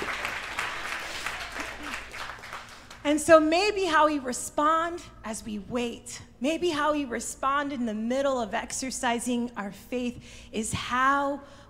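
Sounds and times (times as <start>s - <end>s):
audience clapping: 0.0s - 3.1s
speech: 3.1s - 11.6s.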